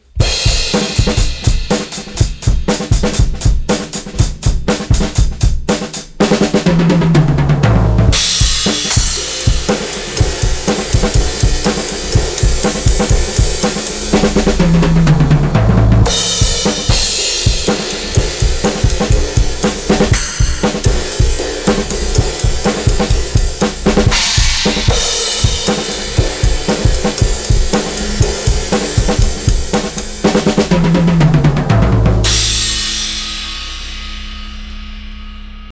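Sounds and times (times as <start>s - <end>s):
drums: 0.0s - 35.6s.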